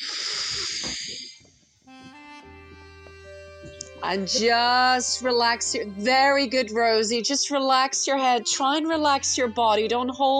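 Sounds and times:
long hissing breath in yoga child's pose: 0.0 - 1.4
soft sustained tonal music: 1.4 - 10.3
speech: 4.0 - 10.3.

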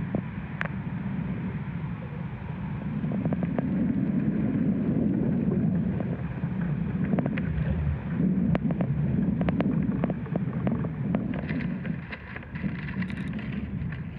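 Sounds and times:
low rumble inside an ash tree: 0.0 - 14.1
dry clicks and crackles inside an ash tree: 0.6 - 0.8, 3.1 - 4.3, 5.9 - 7.8, 8.4 - 14.1.

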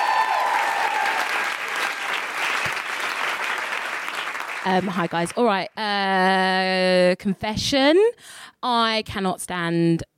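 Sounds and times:
audience applauding: 0.0 - 5.5
speech: 4.6 - 10.1.

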